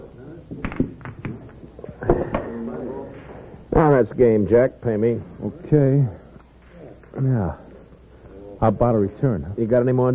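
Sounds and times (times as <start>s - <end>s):
pool balls clacking on a pool room table: 0.5s - 3.8s
speech: 4.0s - 6.2s, 7.2s - 7.6s, 8.6s - 10.1s.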